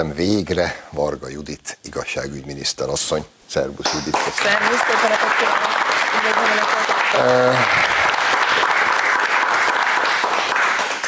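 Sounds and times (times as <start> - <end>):
speech: 0.0 - 8.0
studio audience applause: 3.9 - 11.0.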